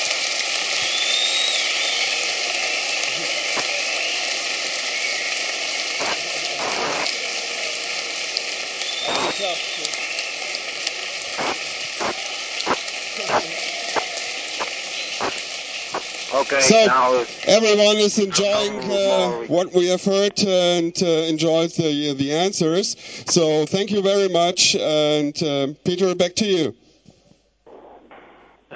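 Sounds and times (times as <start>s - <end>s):
loud applause from school audience: 0.0s - 22.0s
speech: 16.5s - 26.8s.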